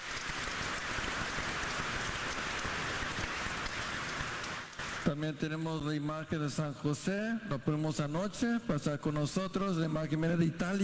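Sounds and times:
audience applause: 0.0 - 5.1
speech: 5.1 - 10.8.

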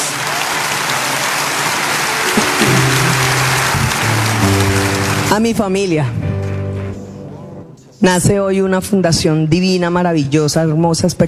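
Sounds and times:
audience applause: 0.0 - 5.6
speech: 5.3 - 6.2, 8.0 - 11.2.

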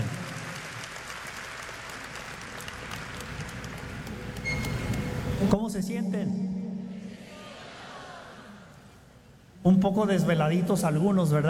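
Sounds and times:
audience applause: 0.0 - 4.5
speech: 5.4 - 6.5, 9.6 - 11.4.

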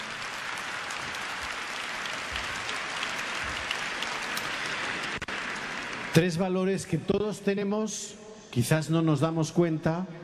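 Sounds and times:
audience applause: 0.0 - 6.6
speech: 6.2 - 10.2.

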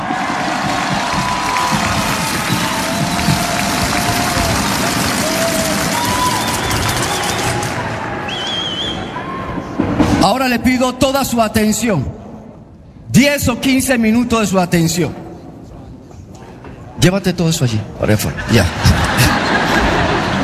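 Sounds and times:
audience applause: 0.0 - 8.9
speech: 10.3 - 12.2, 13.2 - 15.2, 17.0 - 19.0
laughter: 18.4 - 20.4.

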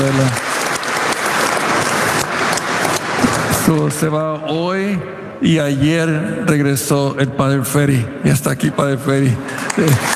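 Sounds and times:
speech: 0.0 - 0.5, 3.7 - 10.1
audience applause: 0.0 - 4.0, 9.5 - 10.1.

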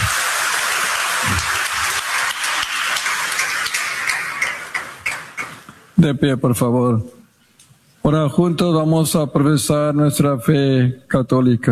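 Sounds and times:
audience applause: 0.0 - 5.6
speech: 6.0 - 7.2, 8.1 - 11.6.

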